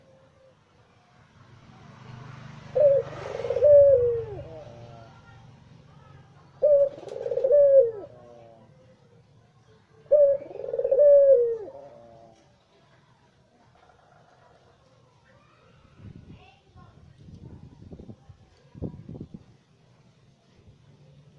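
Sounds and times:
Barbary dove coo: 2.7 - 5.2, 6.5 - 8.8, 10.0 - 12.5.

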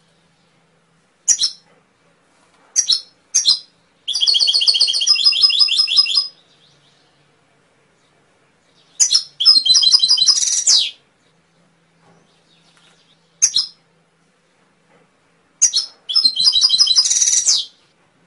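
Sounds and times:
Atlantic canary chirping and trilling: 1.2 - 1.8, 2.7 - 7.0, 8.8 - 11.0, 12.2 - 13.9, 15.6 - 17.9.

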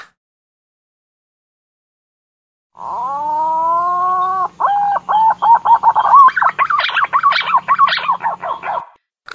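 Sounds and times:
green pigeon whistling: 2.8 - 8.9.

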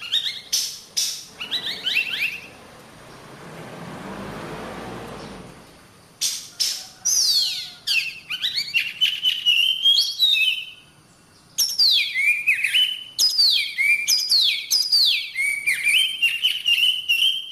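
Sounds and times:
oriental magpie-robin singing: 0.0 - 2.6, 6.2 - 17.5.

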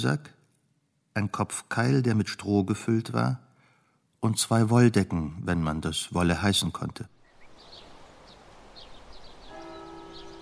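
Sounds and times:
speech: 0.0 - 0.4, 1.2 - 3.4, 4.2 - 7.2
soft hiss: 0.0 - 10.4
small birds chirping: 7.1 - 10.4
monastery church bell striking the quarter hour: 9.4 - 10.4.

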